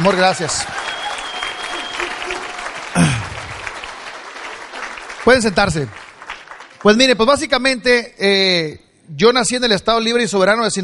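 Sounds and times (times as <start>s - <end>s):
speech: 0.0s - 0.9s, 5.3s - 6.0s, 6.8s - 10.8s
audience applause: 0.0s - 7.2s.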